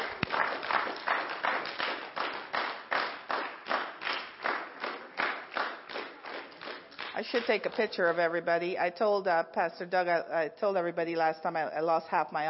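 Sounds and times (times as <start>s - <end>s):
audience clapping: 0.0s - 8.0s
speech: 7.2s - 12.4s.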